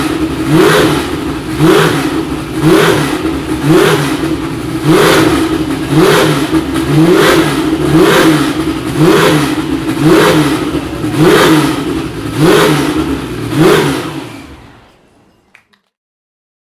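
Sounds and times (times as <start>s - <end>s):
Porsche 936 race car engine starting: 0.0s - 15.3s.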